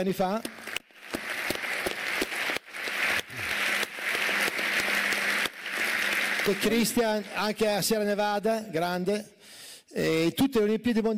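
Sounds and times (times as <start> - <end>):
speech: 0.0 - 0.6, 6.4 - 11.1
big applause from a crowd: 0.4 - 7.7.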